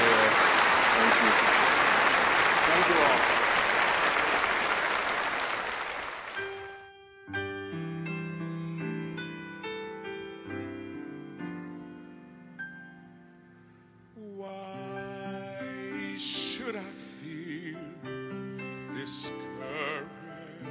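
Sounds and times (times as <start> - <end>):
church congregation applauding its guests: 0.0 - 6.8.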